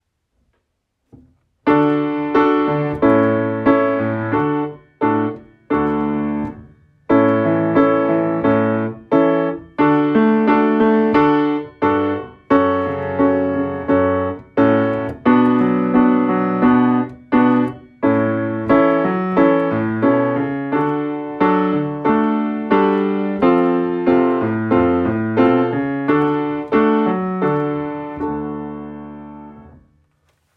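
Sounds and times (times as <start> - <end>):
piano: 1.1 - 30.5.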